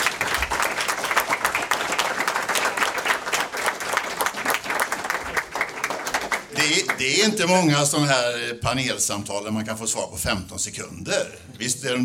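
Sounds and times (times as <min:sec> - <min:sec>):
audience applause: 0:00.0 - 0:07.4
speech: 0:07.0 - 0:12.0.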